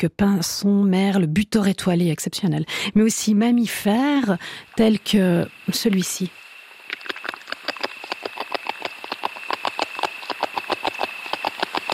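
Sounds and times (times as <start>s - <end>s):
speech: 0.0s - 6.4s
beaver gnawing wood: 6.8s - 11.9s.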